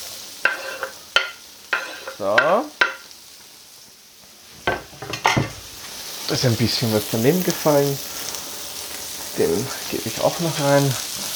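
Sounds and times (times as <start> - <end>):
onions sizzling in a hot pan in schnitzel drippings: 0.0 - 11.3
utensil scraping and clinking while stirring: 0.4 - 2.2
speech: 2.2 - 2.8, 6.3 - 8.1, 9.4 - 11.1.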